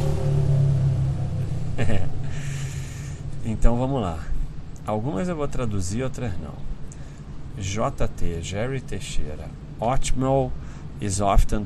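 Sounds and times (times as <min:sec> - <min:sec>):
motorcycle passing by: 0:00.0 - 0:02.4
laughter: 0:01.8 - 0:02.5
speech: 0:03.6 - 0:06.8, 0:07.6 - 0:11.6.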